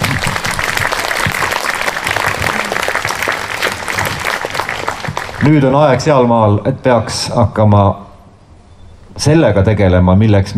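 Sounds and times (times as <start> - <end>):
audience applause: 0.0 - 5.8
speech: 5.4 - 8.1, 9.2 - 10.5.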